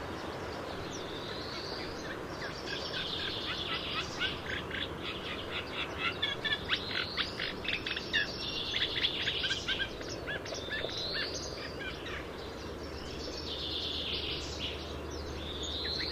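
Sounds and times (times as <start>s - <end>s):
Eurasian reed warbler singing a harsh chatter: 0.8s - 16.1s.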